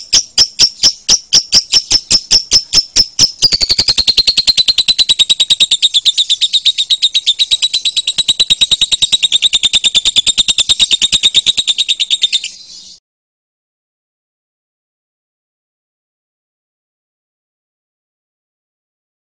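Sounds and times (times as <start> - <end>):
lovebird shrill trill: 0.0 - 13.0.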